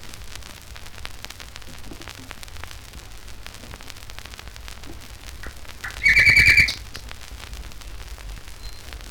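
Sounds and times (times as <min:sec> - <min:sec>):
nightingale song: 0:05.4 - 0:07.0.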